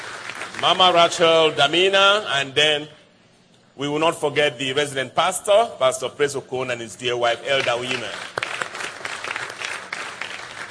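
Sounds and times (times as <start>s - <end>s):
church audience applause: 0.0s - 1.2s, 7.6s - 10.6s
speech: 0.6s - 3.0s, 3.8s - 8.3s.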